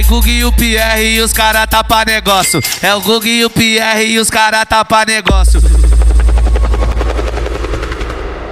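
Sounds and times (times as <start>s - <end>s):
speech: 0.1s - 5.9s
helicopter rotor thumping: 5.3s - 8.4s.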